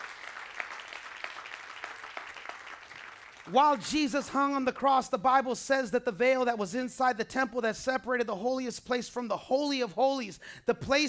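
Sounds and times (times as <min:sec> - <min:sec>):
audience clapping hands: 0:00.0 - 0:04.2
speech: 0:03.5 - 0:11.0.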